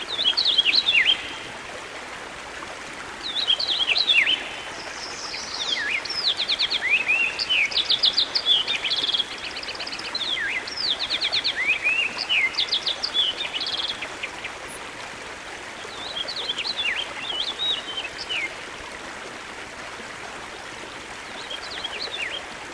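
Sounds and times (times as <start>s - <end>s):
songbird singing whistled slurs, trills and chirps: 0.0s - 1.6s, 3.2s - 14.9s, 15.6s - 18.6s, 20.8s - 22.6s.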